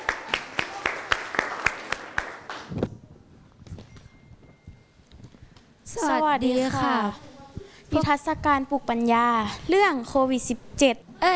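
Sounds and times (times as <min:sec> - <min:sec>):
audience applause: 0:00.0 - 0:02.7
speech: 0:06.0 - 0:07.2, 0:07.9 - 0:11.3.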